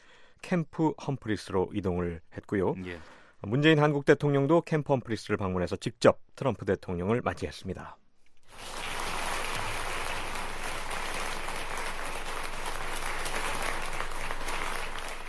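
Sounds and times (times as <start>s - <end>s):
speech: 0.5s - 8.0s
US soldiers applauding: 8.5s - 15.2s.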